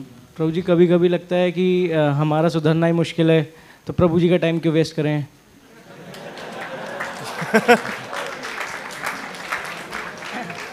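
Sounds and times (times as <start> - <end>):
speech: 0.0 - 5.4, 7.5 - 8.0
laughter: 5.7 - 10.7
audience clapping: 5.9 - 10.7.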